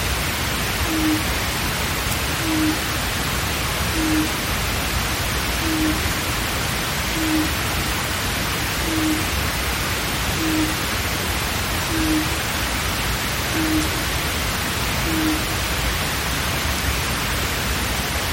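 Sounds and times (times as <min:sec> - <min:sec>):
steady hiss: 0:00.0 - 0:18.3
Japanese night heron hooting: 0:00.8 - 0:01.3, 0:02.4 - 0:02.9, 0:03.9 - 0:04.4, 0:05.5 - 0:06.1, 0:07.1 - 0:07.6, 0:08.8 - 0:09.3, 0:10.4 - 0:10.9, 0:11.9 - 0:12.4, 0:13.5 - 0:14.1, 0:15.0 - 0:15.5.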